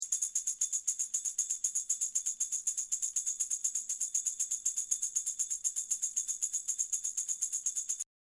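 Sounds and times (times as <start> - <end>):
tambourine duet: 0.0 - 8.0.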